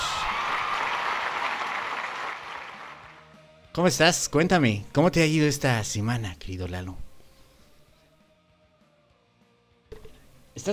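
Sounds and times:
applause: 0.0s - 3.4s
speech: 3.8s - 7.0s, 10.6s - 10.7s.

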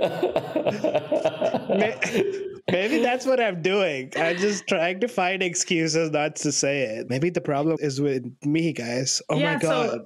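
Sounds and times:
man coughing as if choking: 0.0s - 3.2s
laughter: 0.0s - 4.8s
speech: 0.0s - 10.0s.

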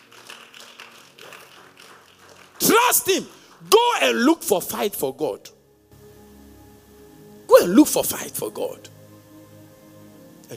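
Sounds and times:
group clapping: 0.0s - 4.4s
speech: 2.9s - 5.6s, 7.6s - 8.9s.

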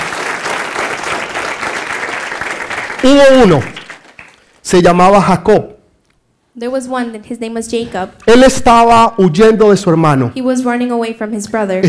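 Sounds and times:
audience clapping: 0.0s - 5.1s
speech: 3.0s - 3.7s, 4.6s - 5.7s, 6.6s - 11.8s.

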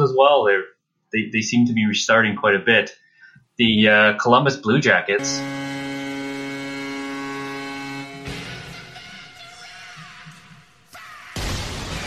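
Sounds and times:
speech: 0.2s - 3.0s, 3.6s - 5.9s
steady buzzing horn-like drone: 5.2s - 9.4s
arena cannon blast: 11.4s - 12.0s.

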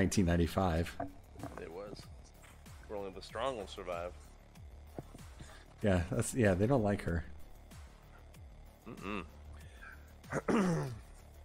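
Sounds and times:
speech: 0.0s - 1.1s, 3.1s - 4.3s, 5.8s - 7.3s, 8.8s - 9.4s, 10.3s - 11.0s
person clearing throat: 8.8s - 9.4s, 10.3s - 11.1s.

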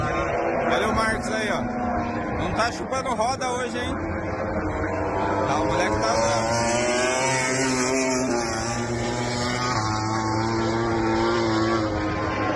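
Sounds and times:
MotoGP motorcycles roaring in a practice session at the Australian round: 0.0s - 12.5s
speech: 2.6s - 6.7s.

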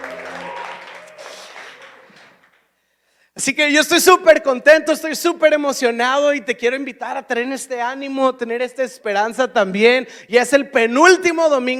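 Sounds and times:
audience applauding: 0.0s - 2.7s
speech: 3.4s - 11.7s.

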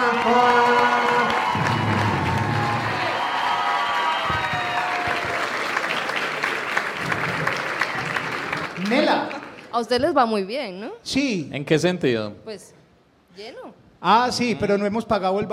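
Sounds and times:
audience applause: 0.0s - 9.7s
speech: 9.8s - 12.8s, 13.4s - 15.5s.

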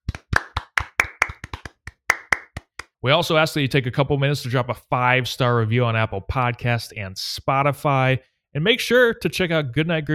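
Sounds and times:
applause: 0.0s - 3.0s
speech: 3.0s - 10.1s.

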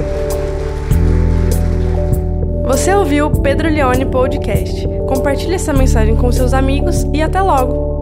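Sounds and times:
crowd applauding loudly: 0.0s - 2.8s
speech: 2.8s - 7.9s.

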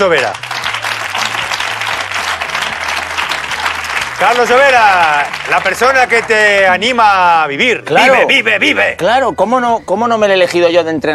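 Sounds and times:
speech: 0.0s - 0.4s, 4.2s - 11.1s
applause: 0.0s - 6.8s.

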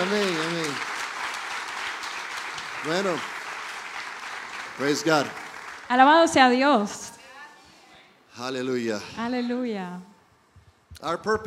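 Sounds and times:
group applause: 0.0s - 6.6s
speech: 2.8s - 3.4s, 4.8s - 7.1s, 8.4s - 10.1s, 11.0s - 11.4s.

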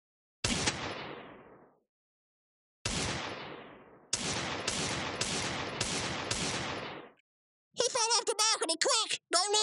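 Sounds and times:
video game gunfire: 0.4s - 1.5s, 2.8s - 7.2s
speech: 8.7s - 9.6s.

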